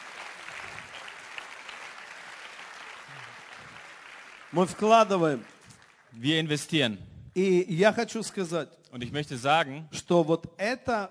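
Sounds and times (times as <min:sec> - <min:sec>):
audience applause: 0:00.0 - 0:06.6
speech: 0:04.5 - 0:05.5, 0:06.2 - 0:11.0.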